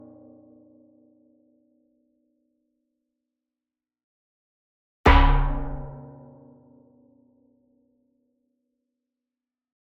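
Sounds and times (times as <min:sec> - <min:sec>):
metal pan hit hard with a beater: 0:05.1 - 0:05.9.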